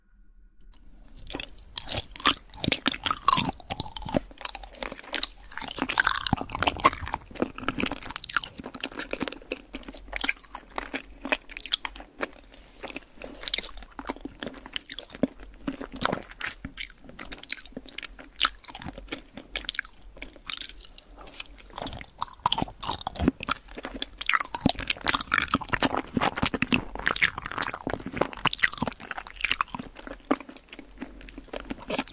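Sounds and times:
chewing and crunching hotpot food: 0:00.7 - 0:32.1.

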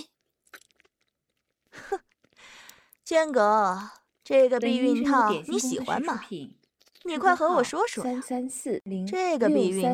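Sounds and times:
chewing and swallowing: 0:00.0 - 0:03.0
speech: 0:03.1 - 0:09.9.

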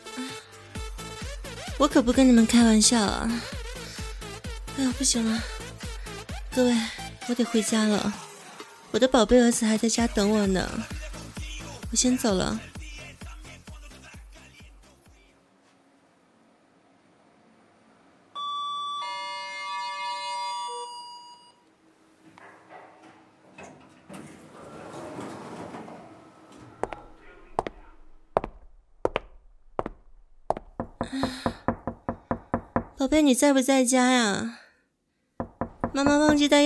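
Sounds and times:
speech: 0:01.8 - 0:03.6, 0:04.8 - 0:05.6, 0:06.6 - 0:08.2, 0:08.9 - 0:11.0, 0:11.9 - 0:12.7, 0:33.1 - 0:34.6, 0:36.0 - 0:36.6
electronic doorbell ringing: 0:18.4 - 0:21.6
knocking on door: 0:30.8 - 0:33.0, 0:35.4 - 0:36.6.

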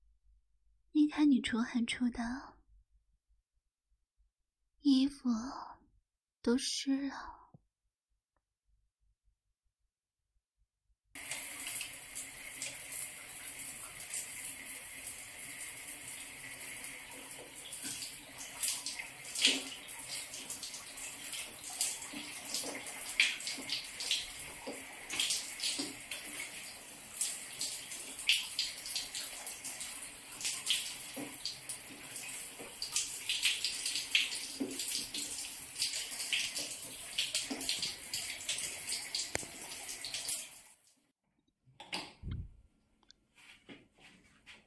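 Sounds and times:
speech: 0:01.1 - 0:02.5, 0:04.8 - 0:05.8, 0:06.4 - 0:07.4
water gushing from a tap to fill a bath: 0:11.2 - 0:40.8.

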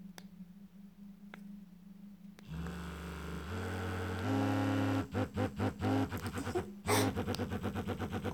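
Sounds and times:
vibrator buzzing: 0:02.4 - 0:08.3.

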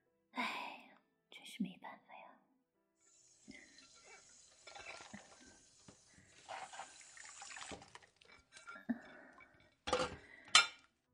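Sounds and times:
speech: 0:01.6 - 0:02.1
water splashing while washing dishes: 0:03.2 - 0:08.7
dishes clinking: 0:03.6 - 0:05.5, 0:07.4 - 0:10.9.

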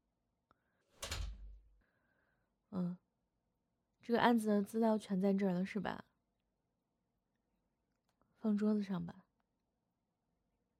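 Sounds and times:
office door closing: 0:01.0 - 0:01.6
speech: 0:04.0 - 0:06.1, 0:08.4 - 0:09.2.

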